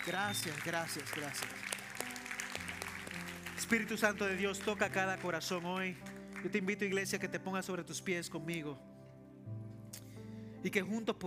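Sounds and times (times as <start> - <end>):
speech: 0.0 - 1.8, 3.6 - 8.9, 10.6 - 11.2
audience applause: 0.0 - 6.8.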